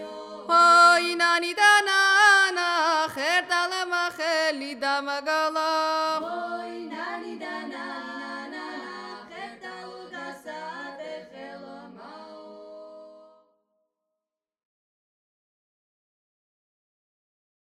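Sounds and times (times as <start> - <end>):
Adjarian folk work song singing: 0.0 - 13.5.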